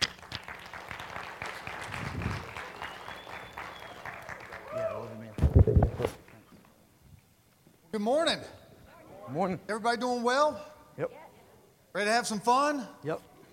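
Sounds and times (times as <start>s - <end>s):
church congregation applauding a guest speaker: 0.0s - 6.5s
speech: 7.9s - 8.6s, 9.3s - 11.2s, 11.9s - 13.3s.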